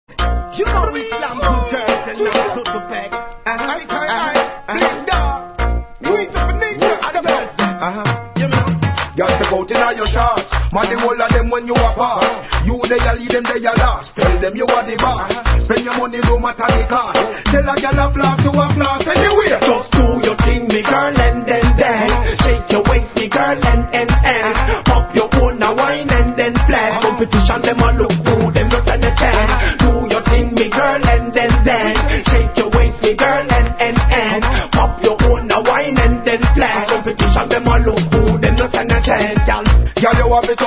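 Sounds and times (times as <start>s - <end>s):
reggae riddim: 0.1s - 40.6s.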